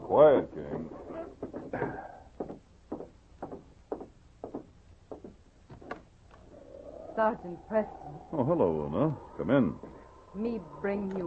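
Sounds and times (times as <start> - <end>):
speech: 0.1 - 0.8, 7.2 - 11.2
timid knock on a wooden door: 1.4 - 6.0.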